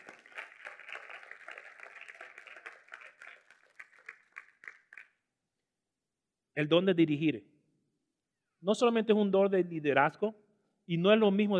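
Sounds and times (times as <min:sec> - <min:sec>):
audience applause: 0:00.0 - 0:05.1
speech: 0:06.6 - 0:07.5, 0:08.6 - 0:11.5.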